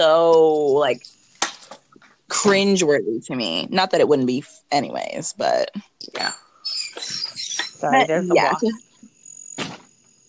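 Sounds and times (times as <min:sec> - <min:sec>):
speech: 0:00.0 - 0:01.2, 0:02.3 - 0:06.4, 0:07.8 - 0:08.9
cricket chirping outside in the country: 0:06.2 - 0:10.2.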